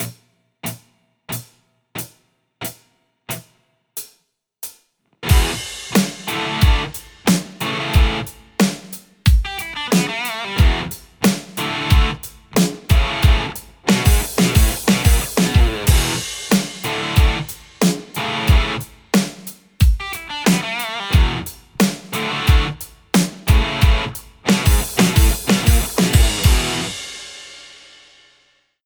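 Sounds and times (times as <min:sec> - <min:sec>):
Telecaster electric guitar: 0:05.2 - 0:08.8, 0:09.4 - 0:19.4, 0:20.0 - 0:27.0.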